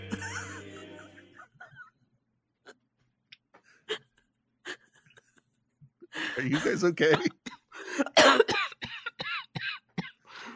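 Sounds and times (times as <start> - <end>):
laughter: 0.0 - 2.0, 6.2 - 8.1
speech: 6.4 - 7.4
person coughing after laughing hard: 6.5 - 10.3.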